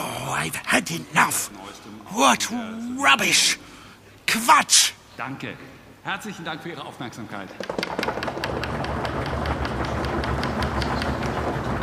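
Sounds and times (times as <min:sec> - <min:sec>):
speech: 0:00.4 - 0:03.7, 0:04.3 - 0:08.6
audience banging on desks: 0:07.6 - 0:11.8.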